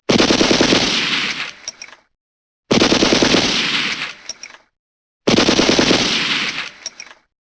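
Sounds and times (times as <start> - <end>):
gunshots: 0.1 - 1.6, 2.7 - 4.3, 5.3 - 7.0.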